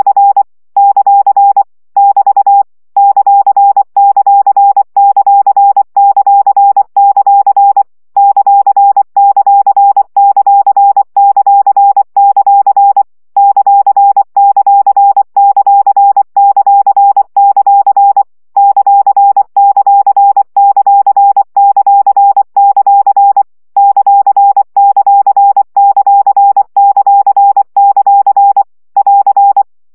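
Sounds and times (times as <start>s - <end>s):
CW morse code practice at 20 baud: 0.0s - 29.7s.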